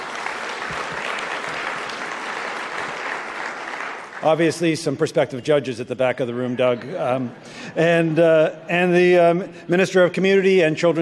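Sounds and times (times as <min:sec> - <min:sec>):
audience applause: 0:00.0 - 0:04.7
speech: 0:04.2 - 0:11.0.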